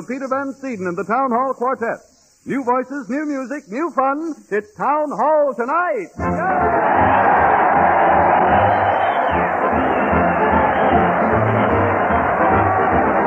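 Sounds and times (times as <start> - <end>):
speech: 0.0 - 7.3
crowd cheering: 6.2 - 13.2.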